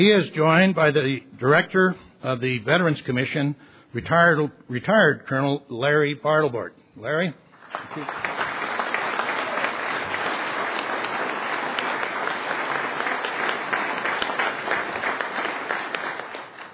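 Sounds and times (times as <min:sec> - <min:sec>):
speech: 0:00.0 - 0:08.4
audience applause: 0:07.6 - 0:16.7.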